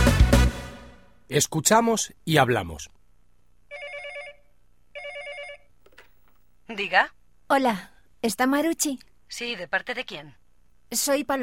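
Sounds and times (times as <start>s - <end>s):
speech: 1.3s - 3.0s, 6.7s - 11.4s
telephone ringing with electronic warble: 3.7s - 6.2s.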